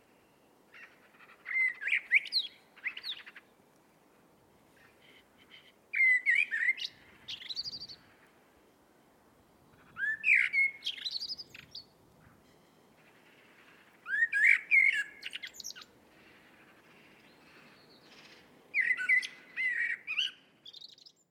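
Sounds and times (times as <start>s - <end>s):
Eurasian blackbird song: 0.0s - 3.6s, 4.7s - 8.4s, 9.6s - 21.2s
background hiss: 0.0s - 21.2s.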